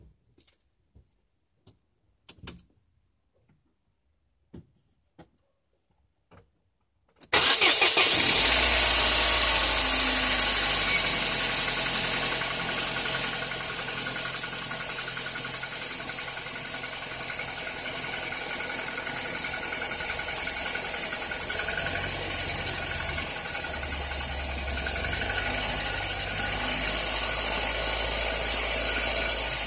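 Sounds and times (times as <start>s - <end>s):
Opel Corsa C 1.2 engine ticking: 7.3s - 29.5s.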